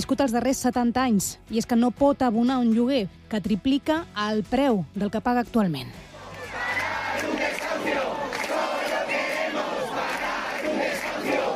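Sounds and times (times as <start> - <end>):
speech: 0.0 - 6.1
large crowd of protesters shouting and chanting at a home eviction: 6.1 - 11.5.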